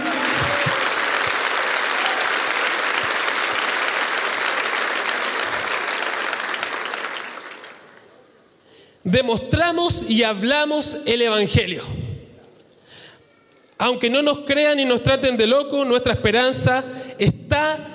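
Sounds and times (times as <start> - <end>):
audience applause: 0.0 - 8.1
speech: 9.1 - 12.0, 13.8 - 17.9.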